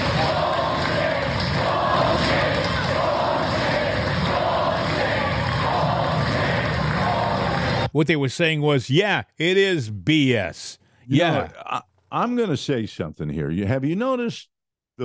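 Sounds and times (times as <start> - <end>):
crowd cheering: 0.0 - 8.0
speech: 7.9 - 15.0.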